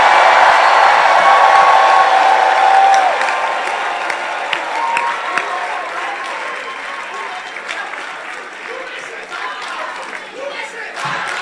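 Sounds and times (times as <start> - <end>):
audience shouting: 0.0 - 7.3
audience clapping: 0.0 - 11.4.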